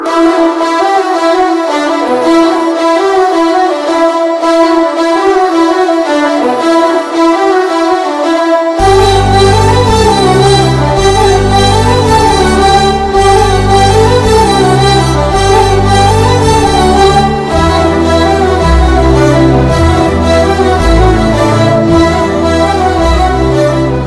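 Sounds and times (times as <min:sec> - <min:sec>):
background music ringtone: 0:00.0 - 0:24.0.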